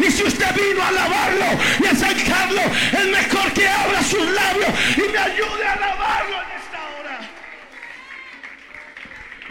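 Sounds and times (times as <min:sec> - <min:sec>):
speech: 0:00.1 - 0:06.4
audience applause: 0:06.3 - 0:09.4.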